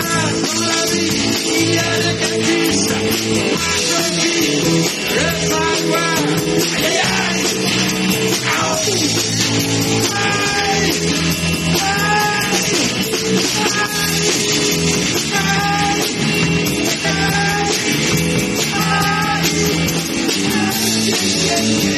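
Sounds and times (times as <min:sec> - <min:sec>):
person singing: 0:00.0 - 0:09.3, 0:09.9 - 0:21.9
loud amplified concert music: 0:00.0 - 0:21.9.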